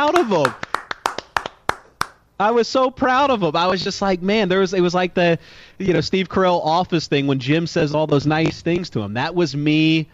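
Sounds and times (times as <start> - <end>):
hand claps: 0.0 - 2.2
speech: 0.1 - 0.6, 2.4 - 10.1.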